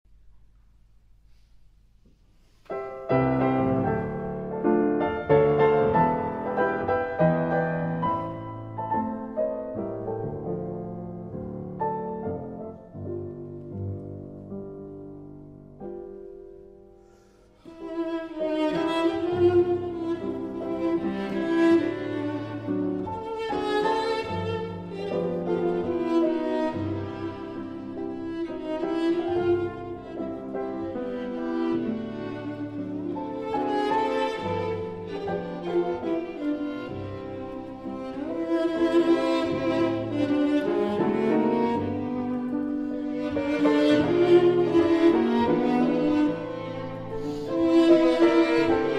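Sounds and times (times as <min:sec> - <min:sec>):
musical trio: 0:00.6 - 0:48.9.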